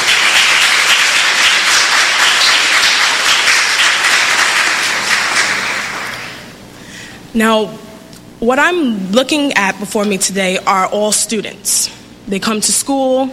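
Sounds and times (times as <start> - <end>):
audience applause for students: 0.0 - 6.5
speech: 7.4 - 7.8, 8.4 - 13.3.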